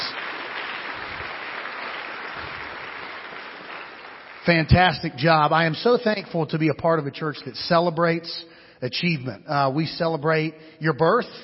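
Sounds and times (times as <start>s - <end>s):
audience applause: 0.0s - 4.9s
speech: 4.5s - 11.4s.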